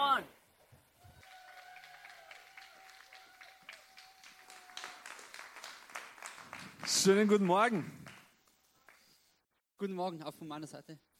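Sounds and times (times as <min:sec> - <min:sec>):
audience applause: 0:01.1 - 0:09.1
speech: 0:06.9 - 0:08.0, 0:09.8 - 0:11.1.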